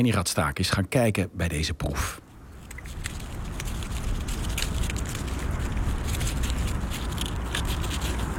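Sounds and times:
speech: 0.0s - 2.2s
flutter tape ribbons flapping on fence wire: 2.5s - 8.3s.

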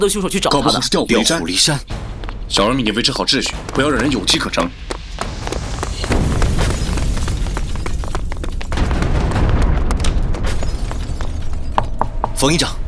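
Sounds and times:
speech: 0.0s - 5.3s, 12.4s - 12.8s
explosion in a ship's storeroom: 1.9s - 12.0s.

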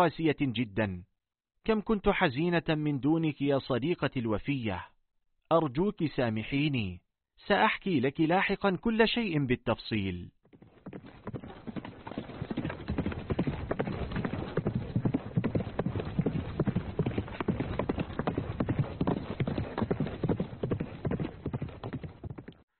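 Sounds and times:
speech: 0.0s - 4.9s, 5.5s - 11.2s
mare's hooves clip-clopping as she dances with a rider: 10.4s - 22.6s.

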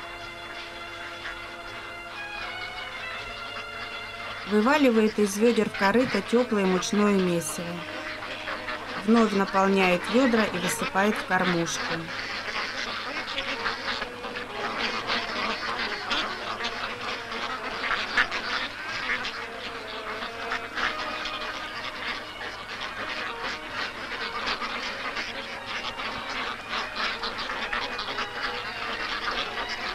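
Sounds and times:
ducks quacking while being fed: 0.0s - 29.9s
speech: 4.5s - 8.0s, 9.0s - 12.3s.

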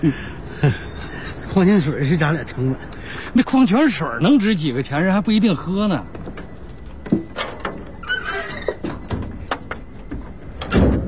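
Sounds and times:
speech: 0.0s - 0.9s, 1.5s - 6.2s
door closing: 6.2s - 11.0s.

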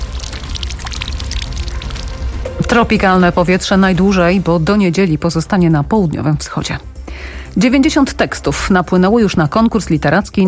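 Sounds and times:
fountain water splashing in Saski Garden, Warsaw: 0.0s - 4.7s
speech: 2.7s - 10.4s.

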